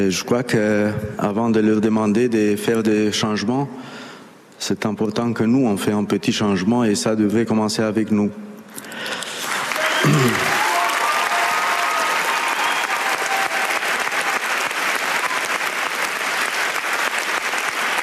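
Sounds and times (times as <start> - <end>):
speech: 0.0 - 4.0, 4.6 - 9.3, 10.0 - 10.5
audience applause: 9.1 - 18.0.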